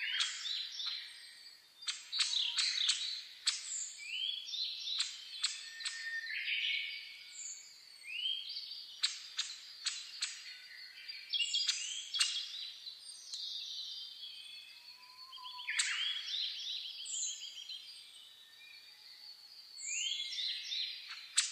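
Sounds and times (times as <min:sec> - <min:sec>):
birds singing together at dawn: 0:00.0 - 0:21.4
low steady whistle: 0:14.7 - 0:15.8.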